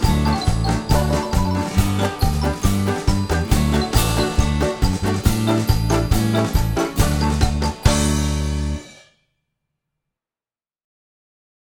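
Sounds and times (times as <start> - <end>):
syncopated march played on strings: 0.0 - 8.5.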